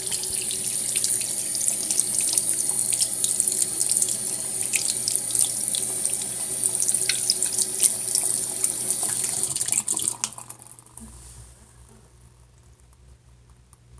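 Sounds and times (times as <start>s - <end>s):
washing hands in a bathroom: 0.0s - 10.5s.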